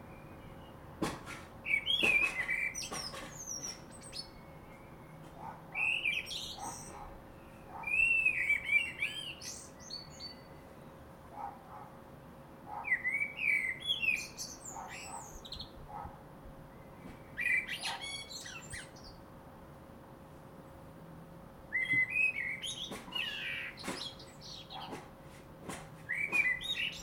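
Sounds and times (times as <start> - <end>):
Common blackbird singing: 1.6 - 11.0, 12.8 - 15.8, 16.7 - 19.2, 21.7 - 25.0, 26.0 - 27.0.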